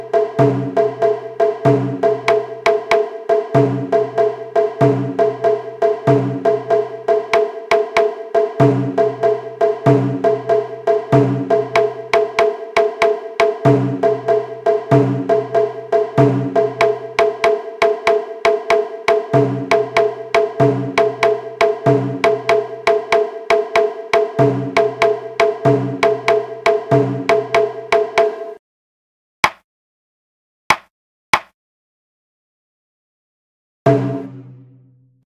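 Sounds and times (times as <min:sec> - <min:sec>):
group of shime drums playing: 0:00.0 - 0:28.4.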